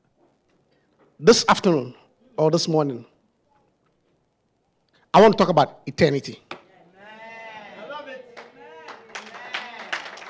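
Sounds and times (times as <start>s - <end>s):
speech: 1.2s - 3.1s, 5.2s - 6.5s
Christians clapping: 6.5s - 10.2s.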